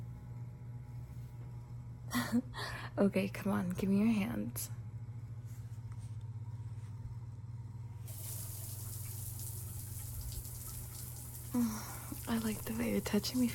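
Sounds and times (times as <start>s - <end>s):
speech: 2.1s - 4.8s, 11.6s - 13.5s
shower water running: 8.1s - 13.5s.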